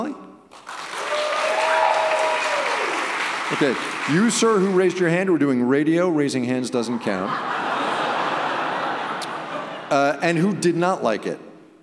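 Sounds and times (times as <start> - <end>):
speech: 0.0 - 0.2, 3.5 - 7.5, 9.9 - 11.5
audience applause: 0.5 - 5.2
whoops and cheers: 0.9 - 3.2
laughter: 7.0 - 10.6.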